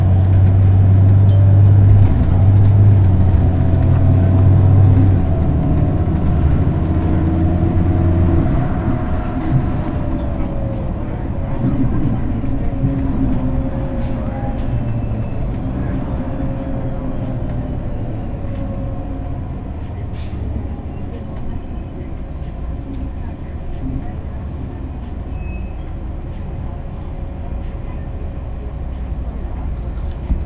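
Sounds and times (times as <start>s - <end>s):
metro subway train: 0.0s - 30.4s.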